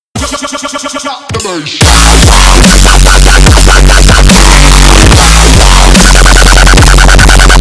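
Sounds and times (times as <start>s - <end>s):
loud distorted ear rape bass drop: 1.8s - 7.5s.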